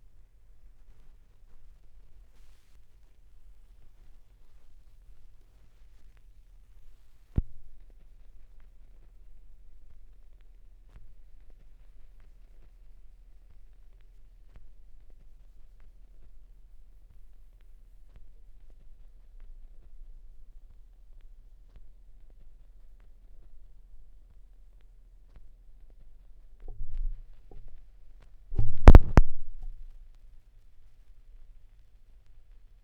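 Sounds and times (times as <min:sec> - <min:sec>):
vinyl record noise at 16 rpm: 0:00.0 - 0:32.8.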